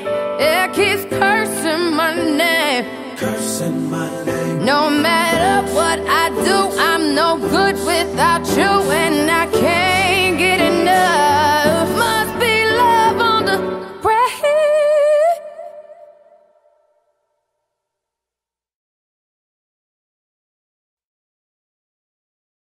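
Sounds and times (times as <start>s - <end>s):
acoustic music: 0.0s - 14.3s.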